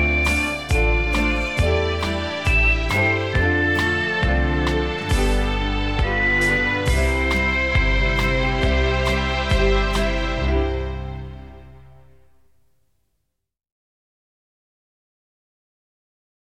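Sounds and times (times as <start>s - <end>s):
documentary background music: 0.0s - 12.3s.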